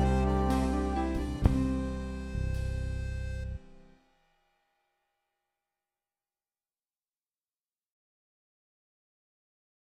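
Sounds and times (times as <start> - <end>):
instrumental music: 0.0 - 4.4.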